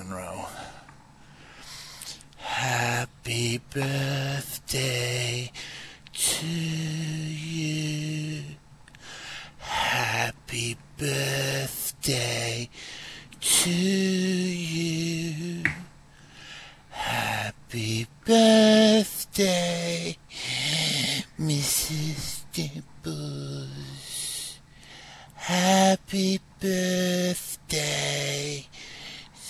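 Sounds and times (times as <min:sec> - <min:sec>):
person singing: 0:02.5 - 0:05.6, 0:06.2 - 0:08.6, 0:09.7 - 0:12.7, 0:13.4 - 0:15.9, 0:17.0 - 0:24.6, 0:25.4 - 0:28.8.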